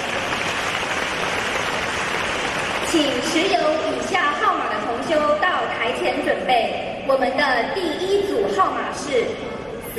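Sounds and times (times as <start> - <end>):
audience applause: 0.0 - 3.1
speech: 2.9 - 9.9.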